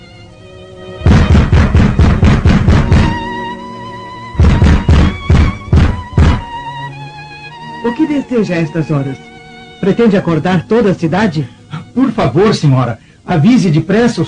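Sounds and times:
loud knocking on a door: 1.1s - 3.3s, 4.4s - 6.5s
speech: 7.8s - 14.2s.

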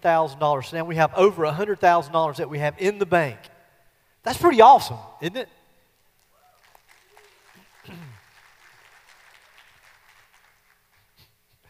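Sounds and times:
speech: 0.0s - 3.5s, 4.2s - 5.6s
faint audience clapping: 6.0s - 11.6s.

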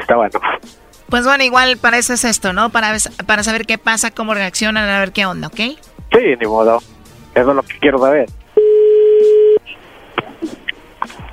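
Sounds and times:
speech: 0.1s - 8.4s
phone call disconnection tone: 8.6s - 9.6s.

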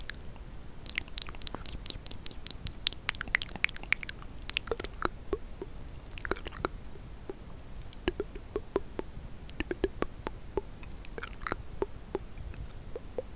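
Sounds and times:
low soft hiss: 0.0s - 13.3s
wet mouth clicks, smacks and squishy chewing noises: 0.0s - 13.3s.

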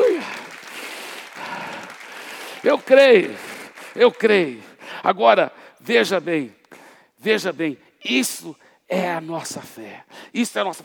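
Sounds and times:
applause: 0.0s - 4.8s
speech: 2.6s - 6.6s, 7.2s - 10.8s.

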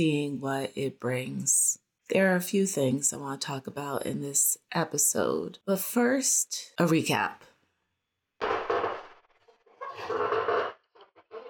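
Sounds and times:
speech: 0.0s - 7.5s
squeaky chair creaking as someone shifts: 8.4s - 11.4s.

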